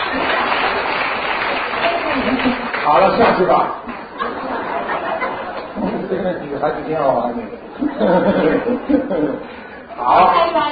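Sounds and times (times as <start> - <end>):
audience clapping: 0.0 - 4.4
laughter: 2.0 - 6.8, 7.7 - 9.6
speech: 2.9 - 3.9, 6.1 - 10.7.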